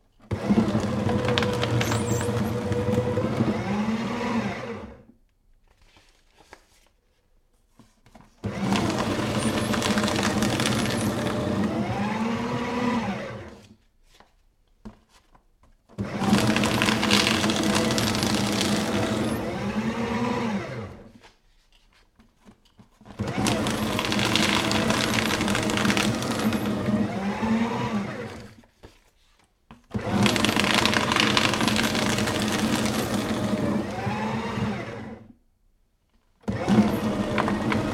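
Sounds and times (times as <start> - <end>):
electric paper shredder shredding various types of paper: 0.2 - 5.1, 8.4 - 13.8, 15.9 - 21.3, 23.0 - 29.0, 29.8 - 35.4, 36.4 - 37.9.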